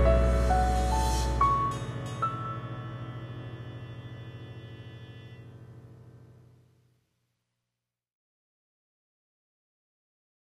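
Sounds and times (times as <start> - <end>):
jazzy noir music: 0.0 - 3.5.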